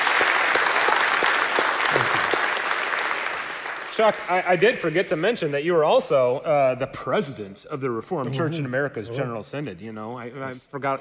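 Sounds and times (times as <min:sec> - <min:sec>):
church fellowship gathering applause: 0:00.0 - 0:04.9
speech: 0:04.0 - 0:10.9.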